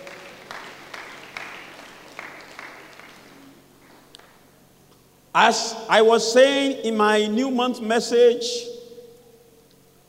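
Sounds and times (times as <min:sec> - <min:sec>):
church congregation applauding during a Sunday service: 0:00.0 - 0:04.4
speech: 0:05.4 - 0:08.7.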